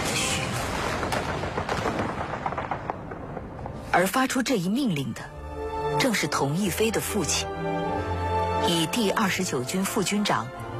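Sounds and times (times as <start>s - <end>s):
gunfire at Lugou Bridge: 0.0s - 3.8s
speech: 3.9s - 5.4s, 6.0s - 8.1s, 8.7s - 10.7s.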